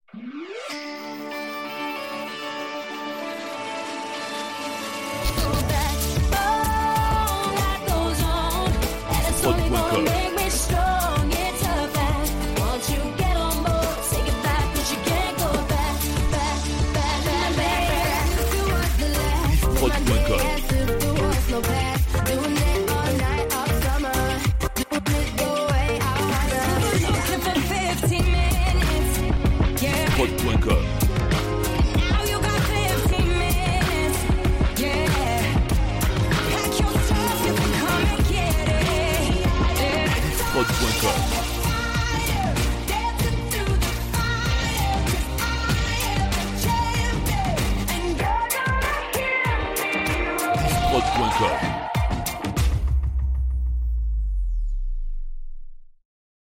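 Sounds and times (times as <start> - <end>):
English-language pop music medley: 0.0 - 54.7.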